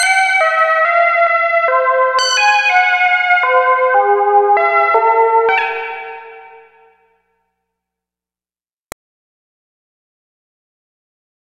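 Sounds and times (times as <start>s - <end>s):
fast sample and hold synth: 0.0s - 6.7s.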